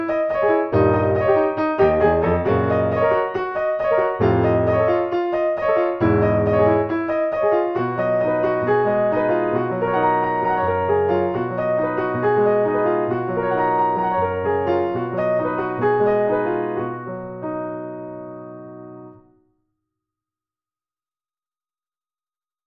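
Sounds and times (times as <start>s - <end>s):
jazz music: 0.0s - 17.9s.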